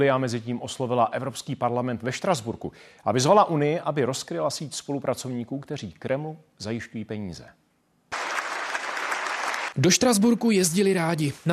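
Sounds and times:
speech: 0.0 - 7.6, 9.8 - 11.5
applause in parliament chamber: 8.1 - 9.9.

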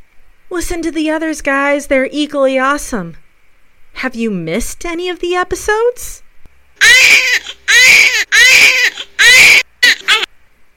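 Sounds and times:
speech: 0.5 - 3.2, 4.0 - 6.2, 6.8 - 10.2
baby crying: 6.8 - 10.3.

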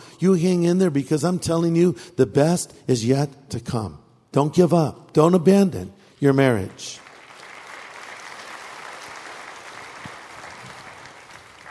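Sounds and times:
speech: 0.2 - 7.0
audience clapping: 6.6 - 11.6.

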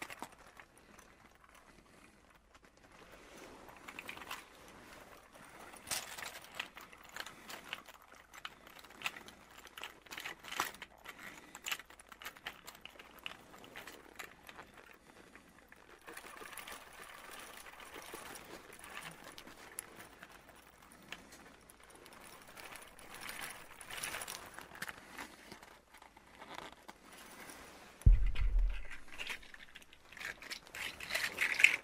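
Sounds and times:
leather coat rustling and creaking: 2.5 - 31.8
deep thump or scrape: 28.1 - 29.8.

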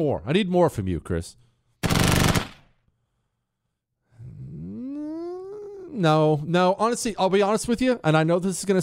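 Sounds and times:
speech: 0.0 - 2.1, 5.9 - 8.8
short loud burst of rapid machine gun fire: 1.8 - 2.7.

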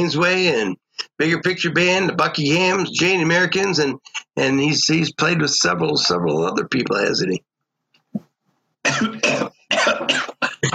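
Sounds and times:
speech: 0.0 - 7.5, 8.8 - 9.4
person coughing after a cicada flew into mouth: 8.8 - 10.7.

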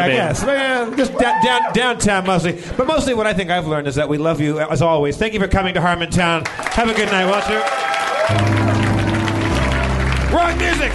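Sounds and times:
speech: 0.0 - 8.7, 10.3 - 10.9
crowd clapping and cheering: 0.2 - 2.5, 6.4 - 10.9
loud rock music: 8.3 - 10.9.

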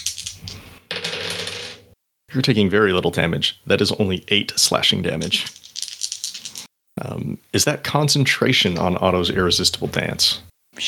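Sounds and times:
dice clattering across a hard surface: 0.0 - 1.9, 5.2 - 6.7
speech: 2.3 - 5.6, 7.0 - 10.8.

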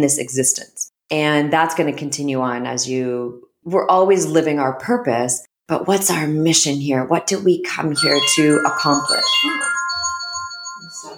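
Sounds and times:
speech: 0.0 - 9.9
phone alarm ringing: 8.0 - 11.1.

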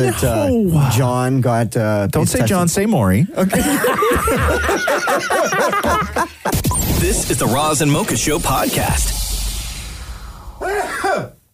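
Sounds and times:
speech: 0.0 - 9.3
laughter: 3.3 - 6.6
sneeze: 10.6 - 11.4.

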